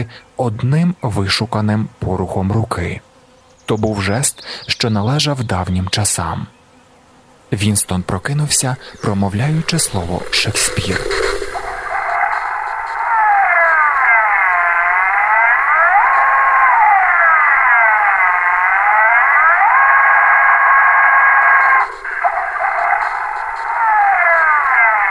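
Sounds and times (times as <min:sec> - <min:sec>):
speech: 0:00.0 - 0:03.1, 0:03.7 - 0:06.6, 0:07.5 - 0:11.4
piercing whistle from a telescreen: 0:07.2 - 0:25.0.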